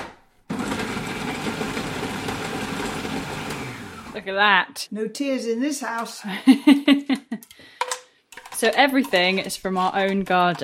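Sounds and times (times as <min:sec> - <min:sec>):
blender whizzing onions: 0:00.5 - 0:04.2
speech: 0:04.2 - 0:07.2, 0:08.6 - 0:10.6
laughter: 0:06.3 - 0:07.5.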